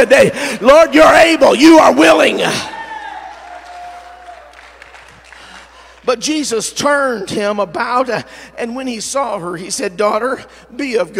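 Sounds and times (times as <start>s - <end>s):
speech: 0.0s - 2.7s, 6.1s - 11.1s
crowd clapping: 3.0s - 6.1s.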